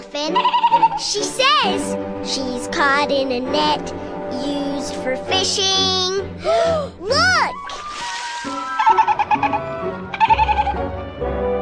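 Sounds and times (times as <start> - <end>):
humming music: 0.0 - 11.6
speech: 0.1 - 7.8
baby dolphin chattering squeaks: 0.4 - 1.0, 7.5 - 9.6.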